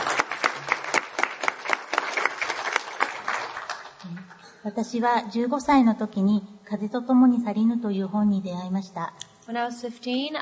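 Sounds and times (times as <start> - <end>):
audience applause: 0.0 - 4.2
speech: 4.6 - 10.3.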